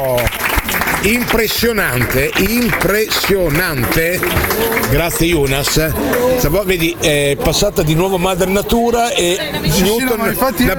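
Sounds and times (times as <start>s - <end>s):
Parma basketball crowd clapping: 0.0s - 7.0s
male commentator speaking Italian: 1.0s - 10.7s
speech: 1.0s - 10.7s.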